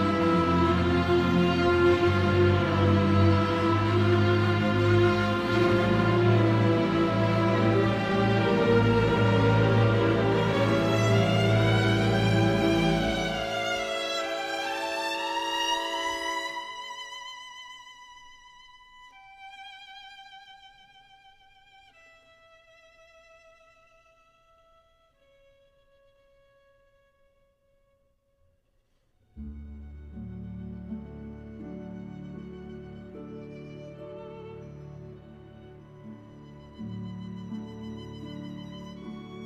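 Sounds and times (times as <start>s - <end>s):
orchestra playing: 0.0s - 17.4s, 29.4s - 39.4s
solo violin: 0.0s - 28.0s, 29.3s - 39.4s.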